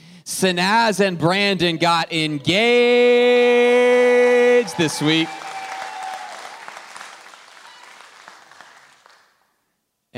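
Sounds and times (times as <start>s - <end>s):
speech: 0.3s - 5.4s
audience clapping: 3.7s - 9.6s.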